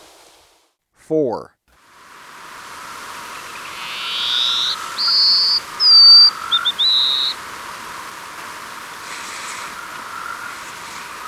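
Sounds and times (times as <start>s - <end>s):
soft hiss: 0.0s - 0.8s, 1.8s - 11.2s
speech: 1.1s - 1.6s
plain-colored seedeater song of buzzy notes and high whistles: 2.2s - 11.2s.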